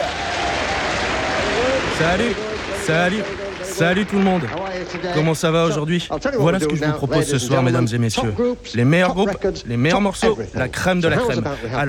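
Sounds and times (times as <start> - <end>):
studio audience applause: 0.0 - 7.4
speech: 2.0 - 11.8.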